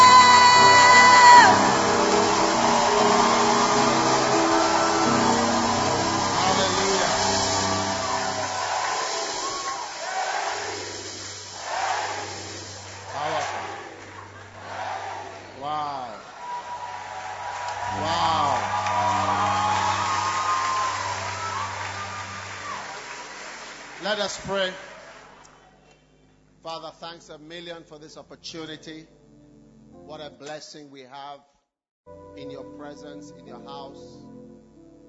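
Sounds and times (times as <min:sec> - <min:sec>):
rising whoops: 0:00.0 - 0:15.2, 0:16.2 - 0:23.8
congregation cheering and shouting to welcome the pastor: 0:00.0 - 0:25.7
speech: 0:24.1 - 0:24.8, 0:27.1 - 0:29.2, 0:30.1 - 0:34.3.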